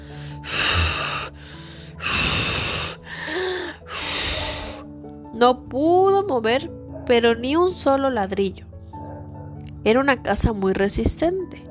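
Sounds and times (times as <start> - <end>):
voice imitating a wolf huffing and blowing: 0.0 - 4.9
speech: 5.4 - 8.7, 9.8 - 11.6.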